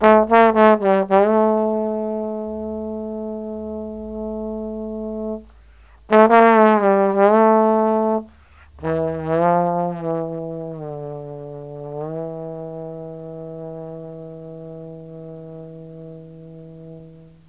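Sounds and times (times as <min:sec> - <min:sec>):
trombone solo with brass: 0:00.0 - 0:17.4.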